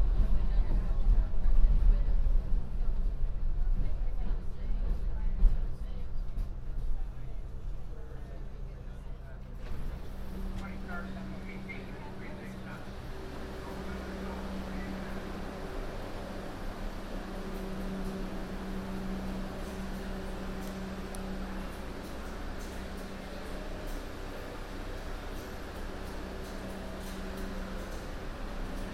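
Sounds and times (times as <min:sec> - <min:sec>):
subway train ride on the local 1 line rumbling and rattling: 0:00.0 - 0:28.9
faint voices: 0:00.1 - 0:28.9.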